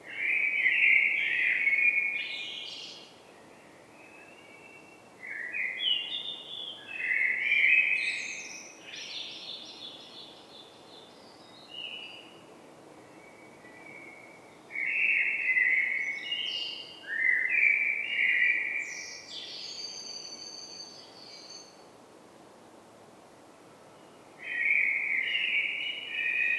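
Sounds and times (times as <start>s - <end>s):
Eurasian blackbird Turdus merula song: 0.1s - 12.4s, 13.0s - 21.9s, 24.0s - 26.5s.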